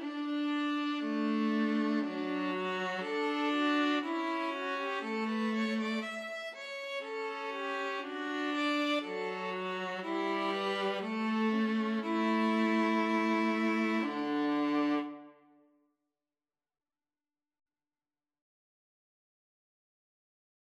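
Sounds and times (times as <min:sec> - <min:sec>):
violin and viola duet: 0:00.0 - 0:15.4.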